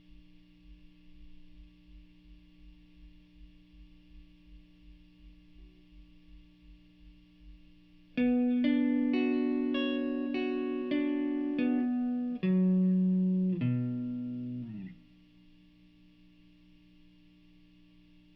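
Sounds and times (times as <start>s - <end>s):
guitar: 7.5s - 16.4s.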